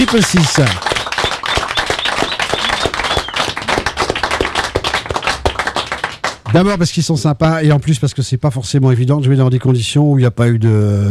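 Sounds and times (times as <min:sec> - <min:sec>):
speech: 0:00.0 - 0:00.9, 0:06.5 - 0:11.0
studio audience applauding musicians: 0:00.0 - 0:06.5.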